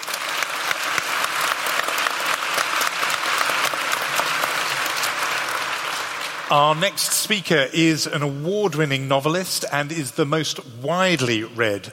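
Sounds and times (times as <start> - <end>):
audience applauding a professor at a lecture event: 0.0 - 7.5
speech: 6.5 - 11.9.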